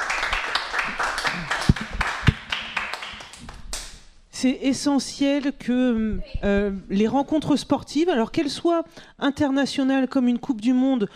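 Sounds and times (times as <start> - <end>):
applause: 0.0 - 4.0
speech: 4.4 - 11.1.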